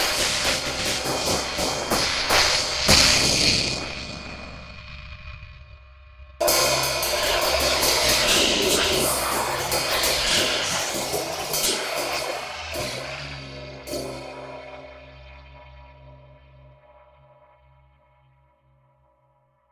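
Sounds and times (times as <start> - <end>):
hi-hat: 0.0 - 4.6, 6.4 - 14.3.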